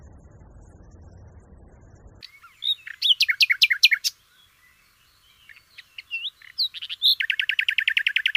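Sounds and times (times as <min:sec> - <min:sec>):
Common nightingale song: 0:02.2 - 0:08.3.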